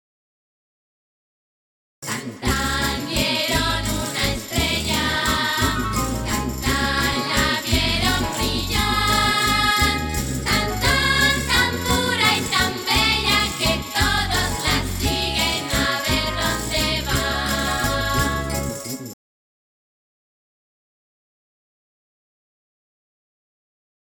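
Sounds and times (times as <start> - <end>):
song verse: 2.0 - 19.1.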